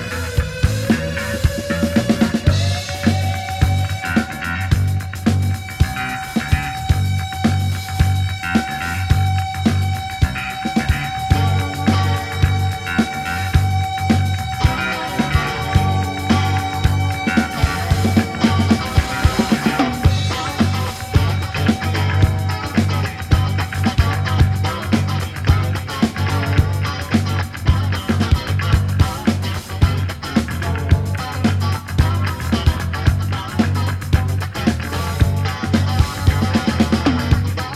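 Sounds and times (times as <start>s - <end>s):
deep synth: 0.0s - 37.6s.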